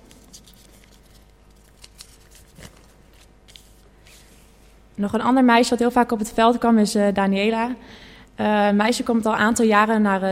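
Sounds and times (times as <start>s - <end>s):
paper note picked up and unfolded: 0.0s - 4.6s
speech: 5.0s - 10.3s.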